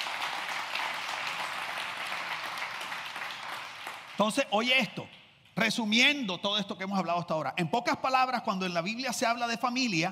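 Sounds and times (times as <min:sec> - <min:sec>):
applause: 0:00.0 - 0:05.2
speech: 0:04.2 - 0:10.0.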